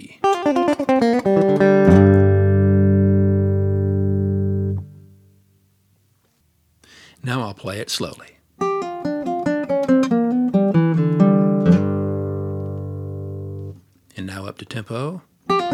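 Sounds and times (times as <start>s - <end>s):
hot Telecaster guitar licks: 0.2s - 5.4s, 8.6s - 13.8s, 15.5s - 15.7s.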